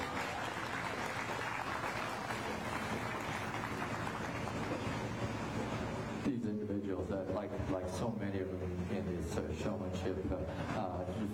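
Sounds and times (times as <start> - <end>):
audience applause: 0.0 - 6.0
speech: 7.3 - 11.3.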